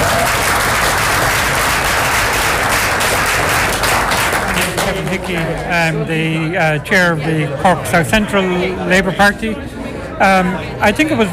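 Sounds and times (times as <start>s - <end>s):
audience round of applause: 0.0s - 5.6s
speech: 5.1s - 11.3s.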